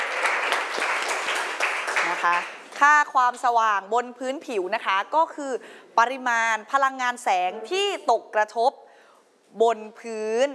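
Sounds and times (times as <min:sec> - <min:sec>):
class applauding: 0:00.0 - 0:02.8
speech: 0:02.2 - 0:08.8, 0:09.5 - 0:10.5.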